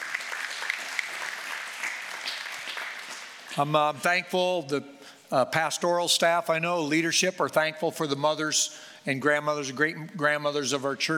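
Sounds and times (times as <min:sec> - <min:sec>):
applause: 0:00.0 - 0:03.7
speech: 0:03.6 - 0:11.1.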